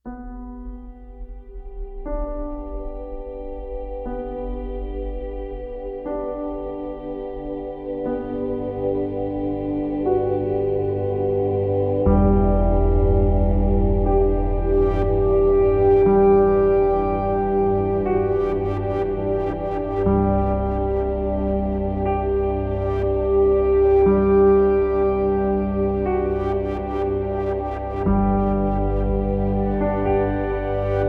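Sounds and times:
beauty ambient music: 0.0s - 31.0s.

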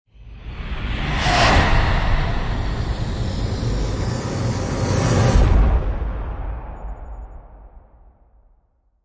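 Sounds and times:
hit and swoosh effect: 0.5s - 6.9s.

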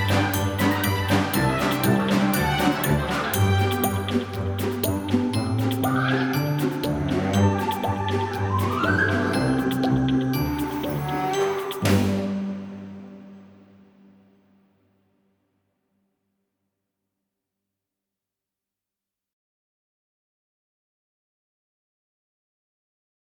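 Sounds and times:
playtime ambient music: 0.0s - 14.4s.

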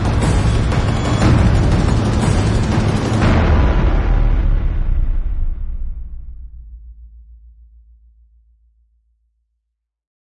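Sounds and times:
percussion: 0.0s - 7.9s.

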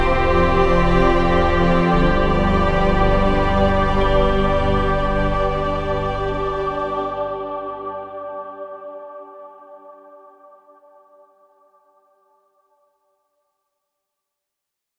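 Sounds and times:
ambient music: 0.0s - 10.5s.

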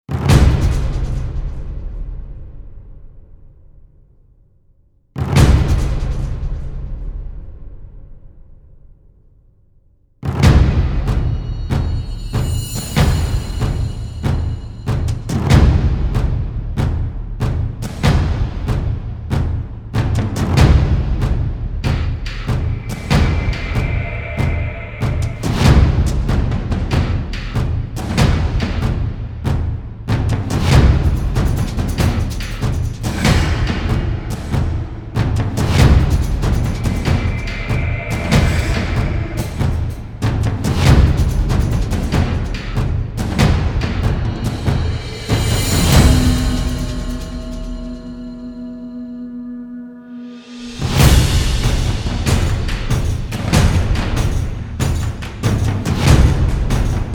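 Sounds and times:
drums: 0.0s - 4.0s, 5.1s - 9.1s, 10.2s - 48.7s, 50.2s - 57.1s.

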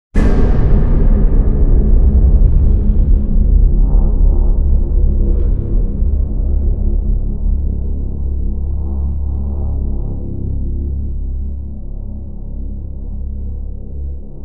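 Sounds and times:
booming drone: 0.2s - 14.4s.

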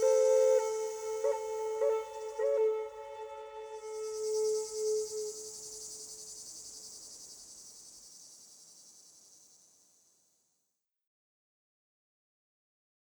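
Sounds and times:
cicada calling in the evening: 0.0s - 2.8s, 3.8s - 10.1s
Native American flutes: 0.0s - 5.5s
sounds of nature: 0.0s - 10.5s.

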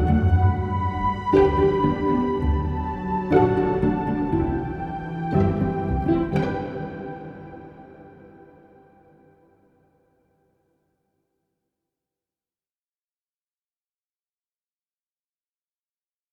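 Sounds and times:
charming ambient music: 0.0s - 9.6s.

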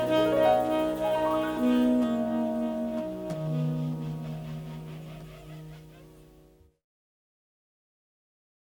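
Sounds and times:
jazz music: 0.0s - 6.8s.

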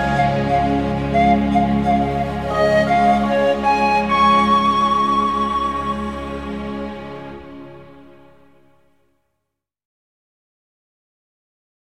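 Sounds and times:
pan flute playing a Christmas song: 0.0s - 8.0s.

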